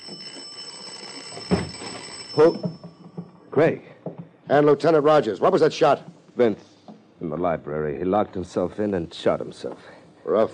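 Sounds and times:
doorbell ringing continuously: 0.0s - 3.5s
speech: 2.4s - 2.8s, 3.6s - 3.9s, 4.5s - 10.5s.

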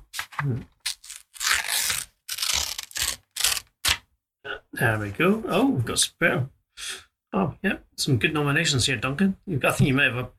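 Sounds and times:
golden envelope torn open: 0.1s - 4.0s
speech: 0.4s - 0.8s, 4.4s - 10.3s.

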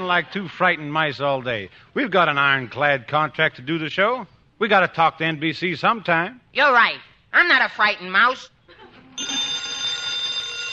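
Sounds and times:
speech: 0.1s - 8.5s
telephone ringing: 9.2s - 10.7s.

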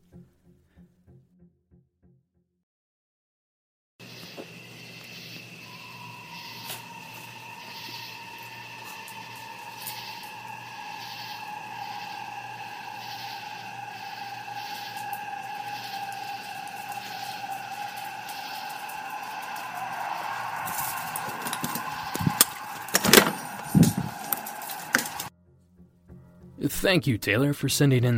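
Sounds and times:
distant large pack of coyotes or coywolves: 4.0s - 25.3s
speech: 26.8s - 28.1s.

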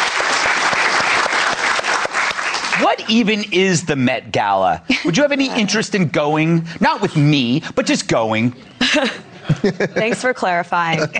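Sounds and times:
applause from several people: 0.0s - 3.4s
speech: 2.9s - 11.1s
laughter: 4.9s - 6.1s, 8.6s - 11.1s.

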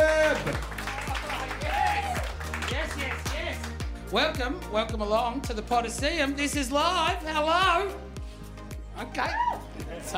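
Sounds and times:
faint voices and cheering: 0.0s - 2.4s
live audience clapping and applauding: 0.0s - 4.0s
speech: 4.1s - 8.1s, 9.0s - 10.1s.

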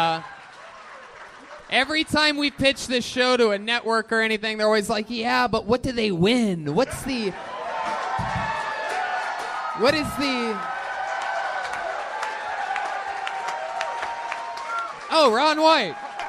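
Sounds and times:
scattered clapping: 0.0s - 3.0s, 7.8s - 16.2s
crowd cheering excitedly: 0.0s - 3.6s, 7.0s - 16.2s
speech: 1.7s - 7.5s, 9.8s - 10.7s, 15.1s - 16.0s.

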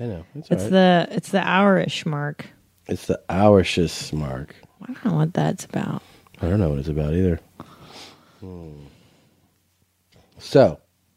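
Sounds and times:
speech: 0.0s - 7.5s, 8.4s - 9.0s, 10.4s - 10.8s
low hum: 0.0s - 11.1s
person sniffing from allergies: 7.6s - 9.3s.

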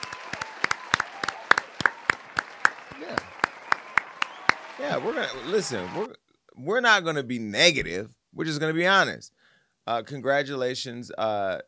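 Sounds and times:
applause: 0.0s - 6.1s
speech: 4.8s - 11.6s.

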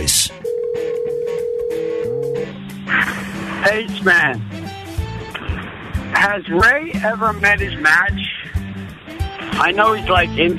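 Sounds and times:
telephone dial tone while calling into voicemail: 0.4s - 2.5s
speech: 3.6s - 4.6s, 6.2s - 8.2s, 9.6s - 10.5s
burst of noise: 5.2s - 6.2s.

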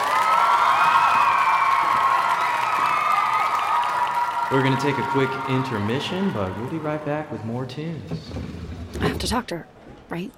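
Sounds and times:
audience applause: 0.0s - 7.7s
speech: 4.5s - 10.3s.

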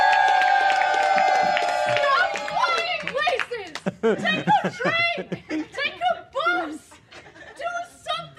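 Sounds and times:
audience applause and cheering: 0.0s - 4.9s
laughter: 1.1s - 8.0s
speech: 4.0s - 5.6s.

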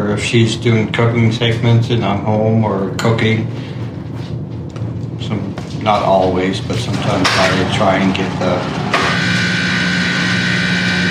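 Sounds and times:
speech: 0.1s - 3.8s, 5.2s - 8.8s
coffee machine switching on: 8.8s - 11.0s.

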